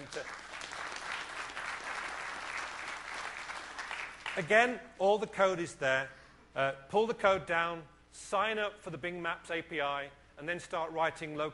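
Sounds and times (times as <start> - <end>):
audience applause: 0.0 - 4.5
speech: 4.4 - 11.5.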